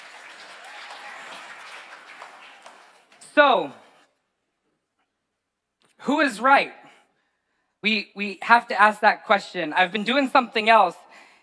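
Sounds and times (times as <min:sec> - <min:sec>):
crowd applause: 0:00.0 - 0:04.0
speech: 0:03.4 - 0:03.8, 0:06.0 - 0:06.8, 0:07.8 - 0:11.0.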